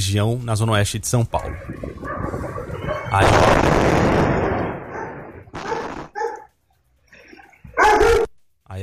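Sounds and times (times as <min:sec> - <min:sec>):
speech: 0:00.0 - 0:04.3
dog barking: 0:02.0 - 0:03.2, 0:04.4 - 0:06.6, 0:07.7 - 0:08.3
gas explosion in São Paulo's West Zone: 0:03.1 - 0:06.2.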